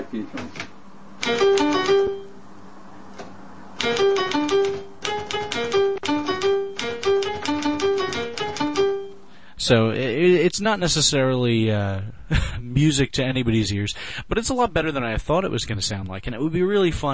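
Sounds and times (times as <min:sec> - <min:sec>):
speech: 0:00.1 - 0:00.6, 0:01.2 - 0:02.2, 0:09.7 - 0:17.1
typewriter keystrokes each sounding a pitched note: 0:01.2 - 0:02.2, 0:03.8 - 0:09.1.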